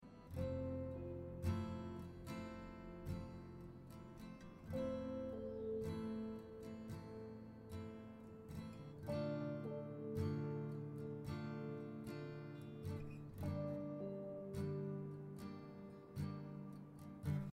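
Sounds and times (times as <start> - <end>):
music: 0.0 - 17.5.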